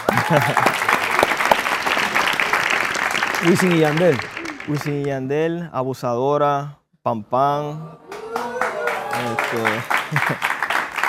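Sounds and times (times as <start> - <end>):
laughter: 0.0 - 1.0, 3.4 - 5.1, 7.8 - 10.8
audience applause: 0.0 - 5.2, 8.0 - 11.0
speech: 0.3 - 1.0, 3.4 - 8.0, 9.2 - 10.5.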